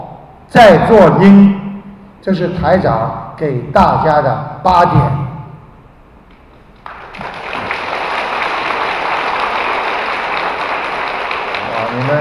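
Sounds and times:
speech: 0:00.0 - 0:01.6, 0:02.2 - 0:05.2
audience applause: 0:06.8 - 0:12.1.

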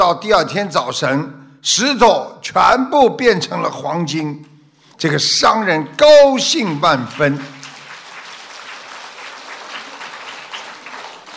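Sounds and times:
speech: 0:00.1 - 0:07.6
audience clapping: 0:06.5 - 0:11.3.

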